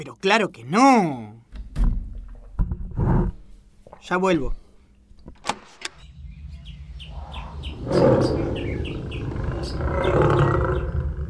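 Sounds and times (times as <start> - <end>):
speech: 0.0 - 1.4, 4.0 - 4.6, 7.8 - 8.6
lions roaring: 7.2 - 11.2.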